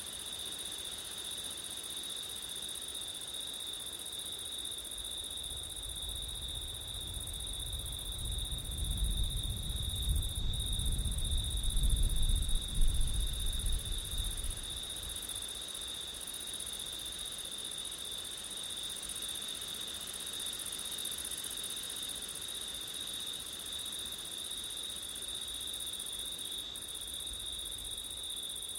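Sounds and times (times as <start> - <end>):
crickets trilling: 0.3 - 28.7
low wind rumble: 5.9 - 15.1.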